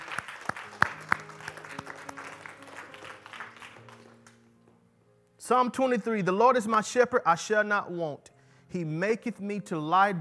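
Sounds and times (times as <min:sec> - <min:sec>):
audience clapping hands: 0:00.0 - 0:04.5
speech: 0:05.5 - 0:10.1.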